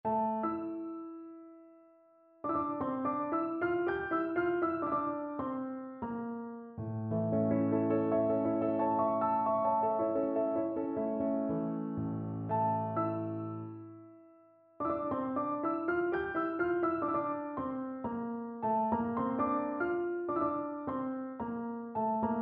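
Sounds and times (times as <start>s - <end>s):
piano prelude: 0.0s - 22.4s.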